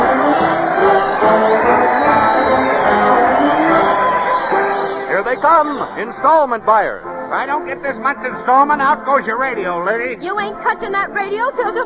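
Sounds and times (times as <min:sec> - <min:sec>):
crowd cheering: 0:00.0 - 0:09.3
speech: 0:05.6 - 0:11.8.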